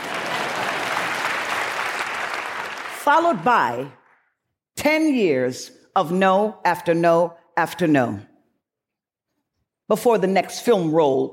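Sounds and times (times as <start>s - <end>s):
audience applause: 0.0s - 3.2s
speech: 3.1s - 4.0s, 4.8s - 8.3s, 9.9s - 11.3s.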